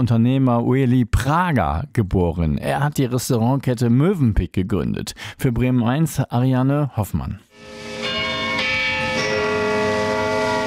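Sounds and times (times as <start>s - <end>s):
speech: 0.0s - 7.9s
church tower bell tolling: 7.6s - 10.6s.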